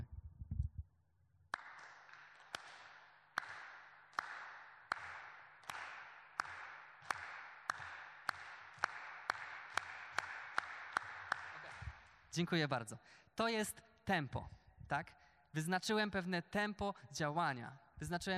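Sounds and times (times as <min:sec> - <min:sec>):
audience clapping in unison to a tempo: 0:01.5 - 0:12.2
speech: 0:12.4 - 0:18.3.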